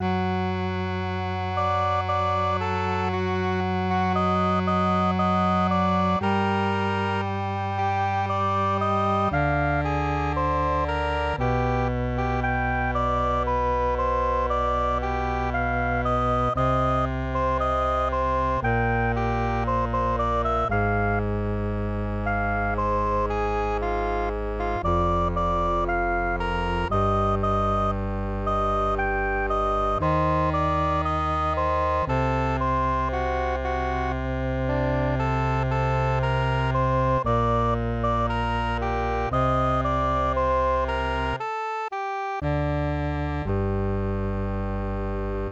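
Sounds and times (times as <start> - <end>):
MIDI music: 0.0 - 45.4.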